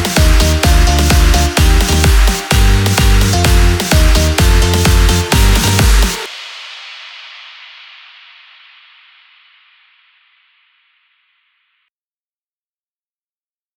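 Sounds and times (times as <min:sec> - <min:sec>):
EDM beats: 0:00.0 - 0:06.7.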